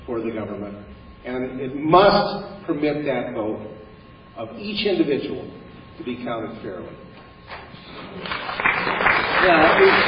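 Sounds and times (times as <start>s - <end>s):
speech: 0.1s - 3.8s, 4.4s - 7.0s, 9.4s - 10.0s
audience applause: 8.2s - 10.0s.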